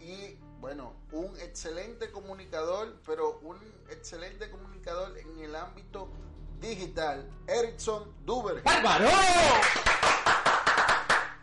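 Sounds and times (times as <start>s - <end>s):
speech: 0.7s - 10.0s
group clapping rhythmically: 9.1s - 11.4s.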